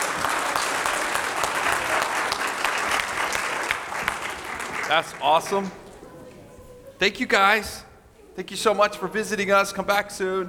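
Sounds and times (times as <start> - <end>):
applause: 0.0 - 5.8
speech: 4.9 - 5.8, 7.0 - 10.4.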